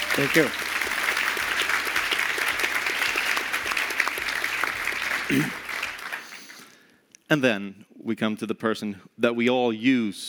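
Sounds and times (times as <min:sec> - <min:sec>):
audience applause: 0:00.0 - 0:06.8
speech: 0:00.2 - 0:00.7, 0:05.3 - 0:05.6, 0:07.3 - 0:10.2.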